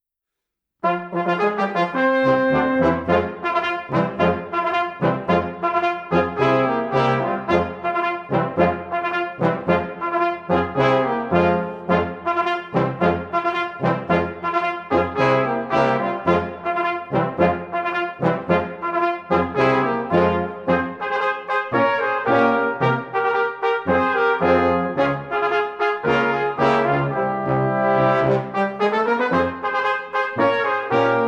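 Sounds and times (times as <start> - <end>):
march music: 0.8 - 31.2.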